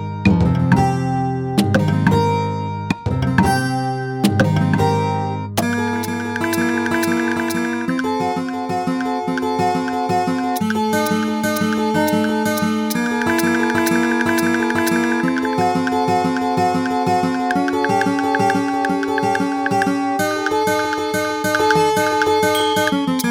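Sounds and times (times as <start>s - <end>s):
music in the Bohlen-Pierce scale: 0.2s - 23.1s.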